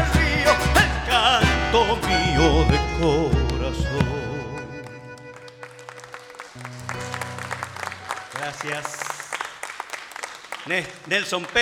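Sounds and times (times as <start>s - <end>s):
sustained accordion-like tones: 0.0s - 7.9s
audience applauding: 4.8s - 11.5s
speech: 8.6s - 9.1s, 10.6s - 11.5s.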